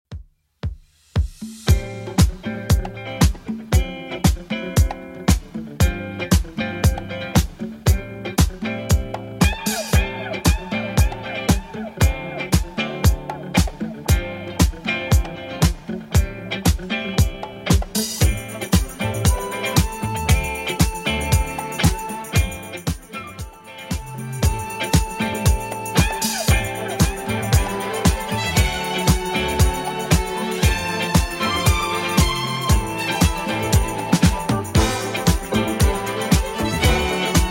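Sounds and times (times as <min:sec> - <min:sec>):
80s drum machine beat at 116 bpm: 0:00.0 - 0:37.4.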